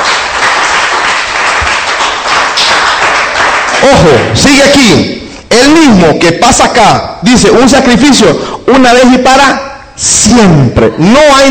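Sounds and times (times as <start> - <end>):
audience clapping hands: 0.0 - 4.5
speech: 3.8 - 11.4.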